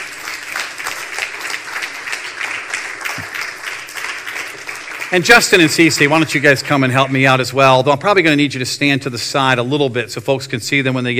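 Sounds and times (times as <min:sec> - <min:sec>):
applause: 0:00.0 - 0:07.5
speech: 0:05.1 - 0:11.1.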